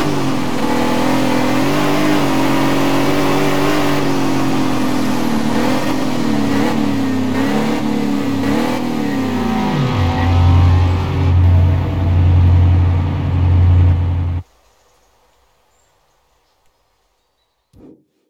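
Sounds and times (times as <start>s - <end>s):
sports car engine: 0.0s - 14.4s.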